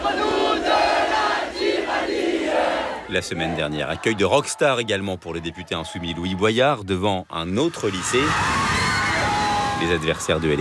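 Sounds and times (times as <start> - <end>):
crowd of high school students singing a national anthem outside a school: 0.0 - 4.5
speech: 3.1 - 8.8, 9.8 - 10.5.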